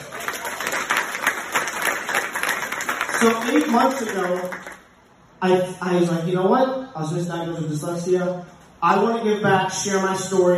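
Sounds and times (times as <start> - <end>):
audience applause: 0.0 - 4.8
speech: 3.2 - 4.8, 5.4 - 10.5.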